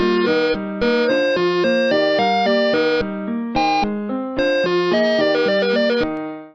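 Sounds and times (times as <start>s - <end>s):
music jingle: 0.0s - 6.3s.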